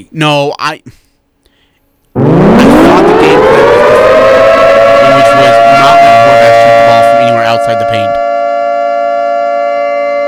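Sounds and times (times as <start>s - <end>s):
speech: 0.0s - 1.0s, 7.6s - 8.3s
alarm siren sound effect: 2.2s - 10.2s.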